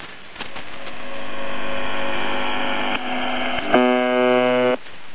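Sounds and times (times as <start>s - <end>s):
USB message buzzer: 0.9s - 4.8s.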